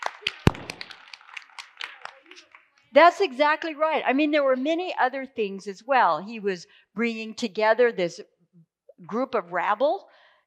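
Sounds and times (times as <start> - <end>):
scattered audience handclaps: 0.0 - 2.9
speech: 2.9 - 8.3, 9.0 - 10.1.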